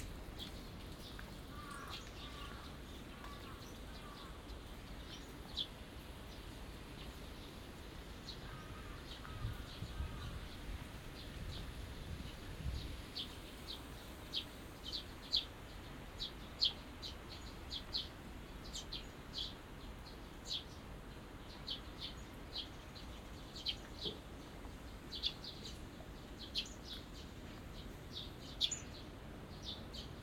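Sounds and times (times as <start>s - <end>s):
small birds chirping: 0.0s - 30.2s.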